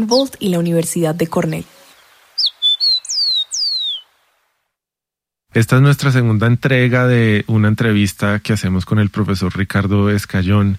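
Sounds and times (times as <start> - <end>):
speech: 0.0 - 1.7, 5.5 - 10.7
rufous-collared sparrow song: 0.0 - 4.1.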